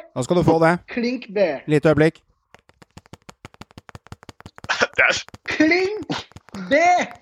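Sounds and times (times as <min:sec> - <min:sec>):
speech: 0:00.2 - 0:02.3, 0:05.1 - 0:07.1
fingernails tapping on laptop as drumroll: 0:02.5 - 0:07.1.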